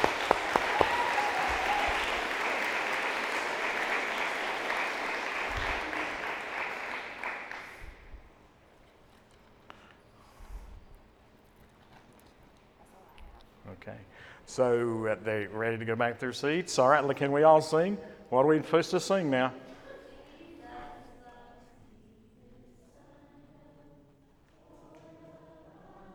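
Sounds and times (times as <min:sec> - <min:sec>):
applause congratulating children receiving Bibles: 0:00.0 - 0:08.3
speech: 0:13.8 - 0:19.6.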